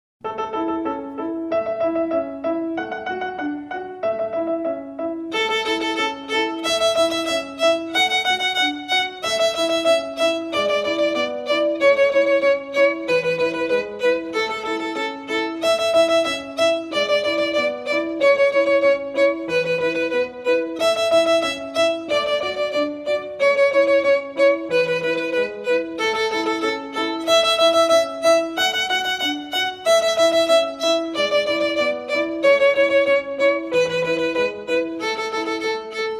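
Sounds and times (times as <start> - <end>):
violin melody at normal rhythm: 0.2 - 36.1.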